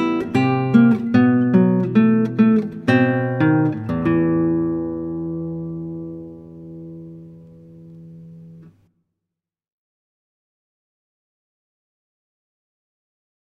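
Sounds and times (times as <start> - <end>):
classical guitar: 0.0 - 8.9.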